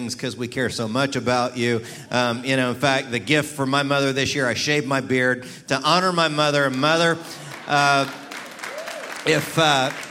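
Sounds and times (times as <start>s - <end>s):
speech: 0.0s - 8.2s, 9.2s - 10.0s
audience clapping during a Mother's Day address: 6.4s - 10.0s.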